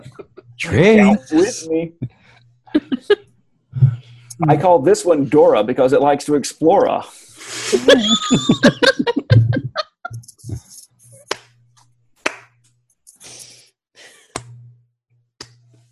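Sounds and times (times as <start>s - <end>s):
people laughing: 0.0s - 2.0s, 2.7s - 3.2s, 7.6s - 10.7s
speech: 0.6s - 2.2s, 4.4s - 9.5s
slow hand claps: 11.3s - 11.6s, 12.2s - 12.5s, 14.3s - 14.6s.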